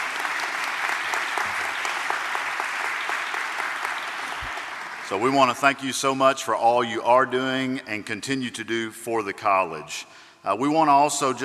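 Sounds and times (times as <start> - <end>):
audience at a college gathering applauding trustees and honored guests: 0.0 - 5.6
speech: 5.1 - 11.4.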